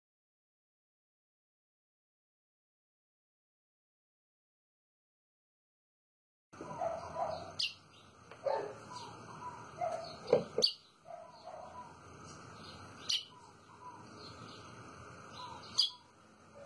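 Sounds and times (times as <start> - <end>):
white-throated seedeater song: 6.6 - 16.6.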